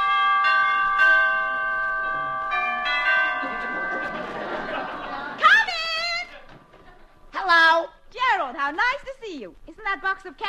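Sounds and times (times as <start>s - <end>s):
doorbell ringing: 0.0s - 5.2s
laughter: 3.4s - 7.2s
speech: 8.7s - 10.4s.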